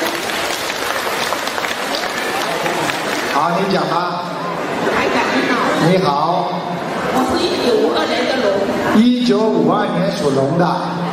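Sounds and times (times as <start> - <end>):
audience applause: 0.0 - 4.5
speech: 3.4 - 5.0, 5.8 - 6.6, 7.4 - 11.1.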